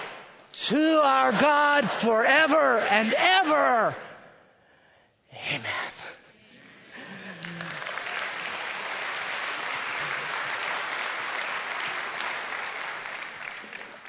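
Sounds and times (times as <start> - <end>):
speech: 0.7 - 4.1
audience applause: 6.8 - 14.0.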